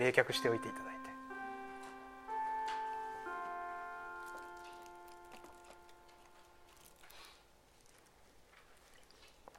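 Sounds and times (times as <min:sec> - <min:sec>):
speech: 0:00.0 - 0:01.0
school chime ringing: 0:00.0 - 0:07.3.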